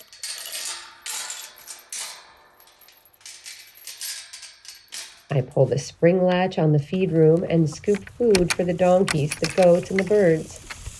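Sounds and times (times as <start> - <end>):
metal chain rattling on a barn gate: 0.0 - 5.4, 7.6 - 10.9
speech: 5.3 - 10.6.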